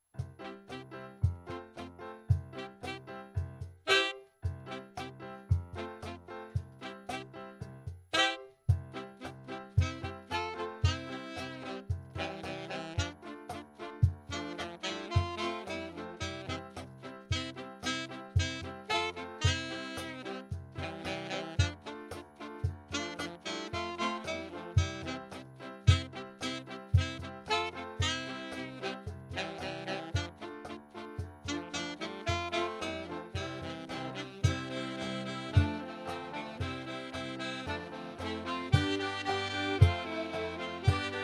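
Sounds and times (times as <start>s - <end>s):
instrumental music: 0.0s - 41.2s.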